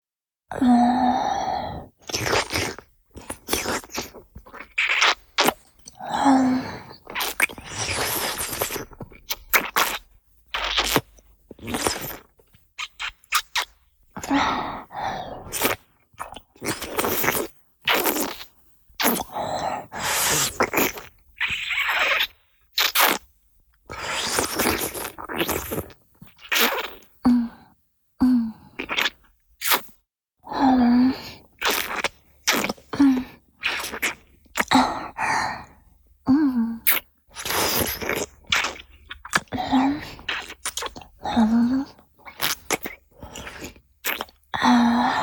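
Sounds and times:
licking and sucking sounds: 0:00.9 - 0:27.4, 0:28.2 - 0:30.0, 0:30.8 - 0:35.8, 0:36.7 - 0:45.2.

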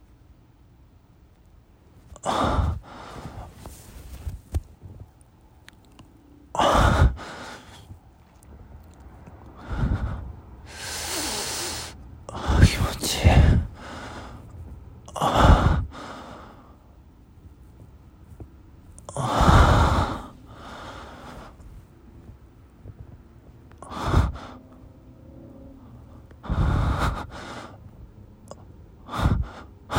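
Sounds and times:
person breathing and moaning while masturbating: 0:02.2 - 0:04.5, 0:06.6 - 0:07.9, 0:09.6 - 0:14.5, 0:15.1 - 0:16.6, 0:19.1 - 0:21.6, 0:23.8 - 0:24.8, 0:25.5 - 0:27.9, 0:28.6 - 0:29.9.

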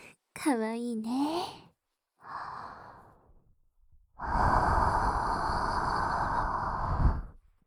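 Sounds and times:
speech: 0:00.4 - 0:01.6
breath blown softly into ear: 0:04.2 - 0:07.4.

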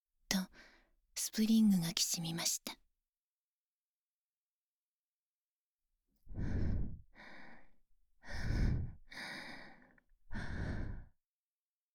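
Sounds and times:
speech: 0:01.2 - 0:02.8
woman breathing heavily: 0:06.3 - 0:11.2.

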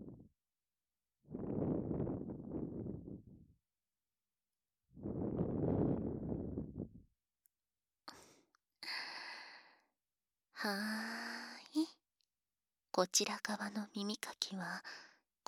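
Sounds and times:
breath blown into the ear: 0:01.3 - 0:03.2, 0:05.0 - 0:06.9
speech: 0:10.6 - 0:10.8, 0:13.0 - 0:15.4.

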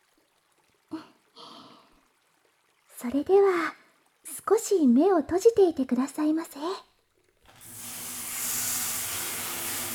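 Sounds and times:
speech: 0:03.0 - 0:03.8, 0:04.4 - 0:06.9
shower water rinsing hair: 0:07.5 - 0:09.9.

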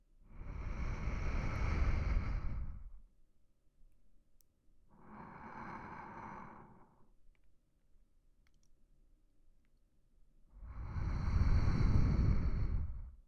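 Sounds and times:
sleeping breathing: 0:00.3 - 0:03.0, 0:05.0 - 0:07.1, 0:10.6 - 0:13.2.

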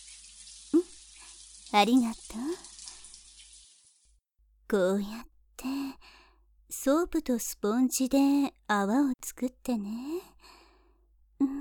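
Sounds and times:
running shower water: 0:00.0 - 0:04.2
speech: 0:01.7 - 0:02.7, 0:04.7 - 0:05.8, 0:06.8 - 0:10.3.

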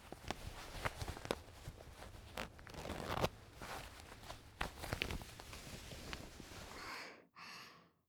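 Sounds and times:
fabric rustling: 0:00.0 - 0:06.8
trouser zipper being pulled open: 0:02.3 - 0:03.3.

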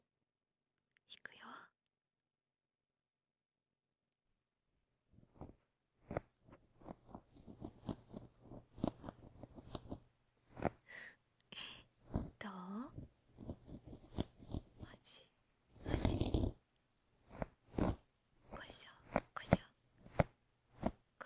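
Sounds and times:
ear cleaning sounds: 0:05.2 - 0:14.9, 0:15.7 - 0:16.6, 0:17.2 - 0:21.0.

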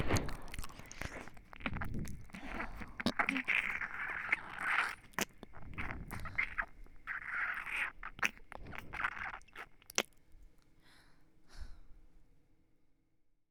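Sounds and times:
earlobe licking on both ears: 0:00.0 - 0:10.3.

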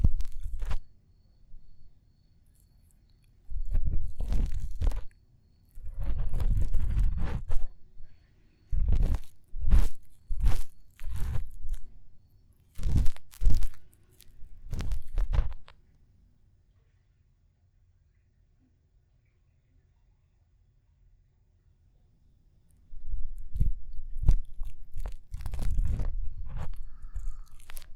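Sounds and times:
ASMR ear cleaning on a lap pillow: 0:00.0 - 0:00.9, 0:03.5 - 0:05.1, 0:05.8 - 0:12.2, 0:12.8 - 0:15.8, 0:22.9 - 0:27.9.

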